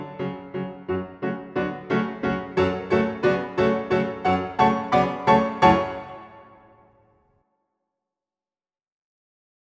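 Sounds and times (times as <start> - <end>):
solo piano: 0.0 - 6.8.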